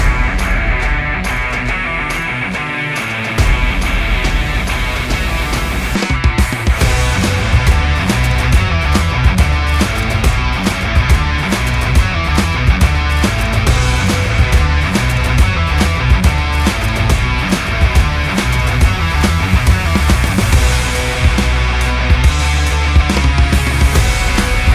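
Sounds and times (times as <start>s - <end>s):
music: 0.0s - 24.7s.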